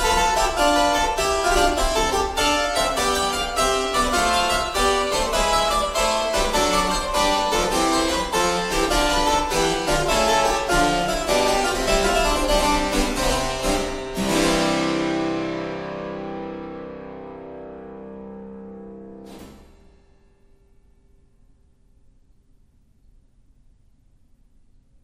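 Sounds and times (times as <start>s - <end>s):
suite in C major: 0.0s - 19.9s.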